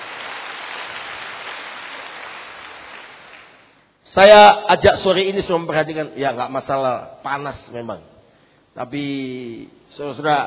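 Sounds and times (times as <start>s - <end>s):
audience applause: 0.0s - 3.6s
speech: 4.2s - 8.1s, 8.8s - 10.4s.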